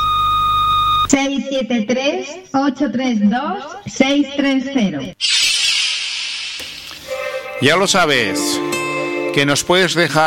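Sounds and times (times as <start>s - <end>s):
answering machine beep: 0.0s - 1.1s
speech: 1.1s - 5.5s, 7.6s - 10.2s.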